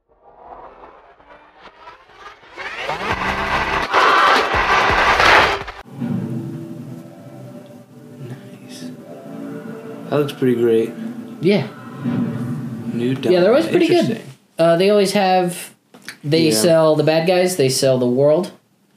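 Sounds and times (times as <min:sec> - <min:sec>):
low rumble: 0:00.0 - 0:06.4, 0:11.2 - 0:13.2
vehicle engine revving in a Far Cry game trailer: 0:00.3 - 0:05.8
speech: 0:10.1 - 0:18.6.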